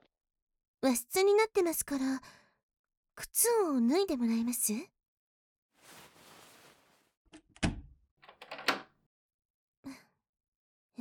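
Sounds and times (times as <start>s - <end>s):
speech: 0.8s - 2.4s, 3.2s - 4.9s
door being closed and locked: 7.5s - 8.9s.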